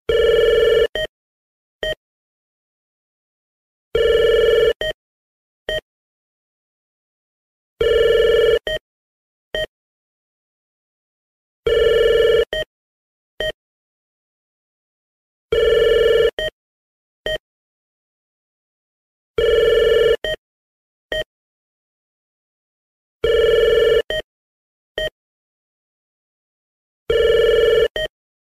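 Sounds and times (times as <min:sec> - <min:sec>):
desk phone: 0:00.1 - 0:01.1, 0:04.0 - 0:04.9, 0:07.8 - 0:08.8, 0:11.7 - 0:12.7, 0:15.5 - 0:16.6, 0:19.4 - 0:20.4, 0:23.2 - 0:24.3, 0:27.1 - 0:28.1.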